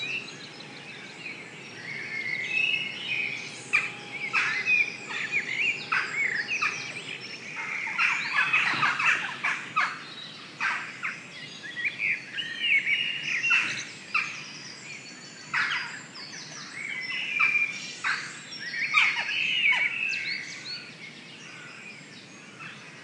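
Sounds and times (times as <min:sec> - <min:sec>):
dawn chorus birds singing in Stroud: 0:00.0 - 0:23.0.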